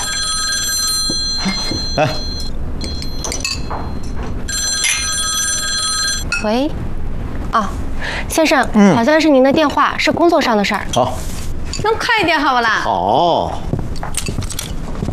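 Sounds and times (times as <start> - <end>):
telephone bell ringing: 0.0 - 6.3
hum: 0.0 - 15.1
speech: 2.0 - 2.3, 6.4 - 6.9, 7.5 - 13.7.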